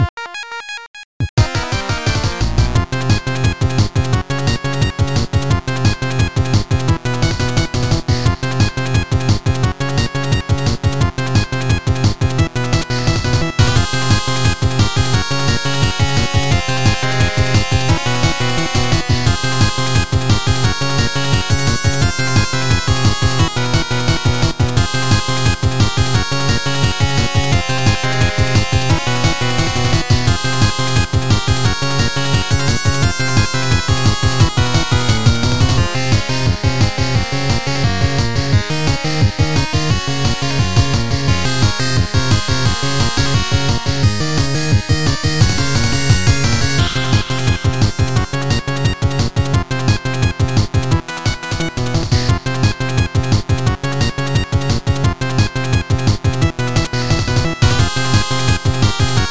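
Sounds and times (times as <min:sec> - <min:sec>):
internal percussion: 0:01.4 - 0:59.2.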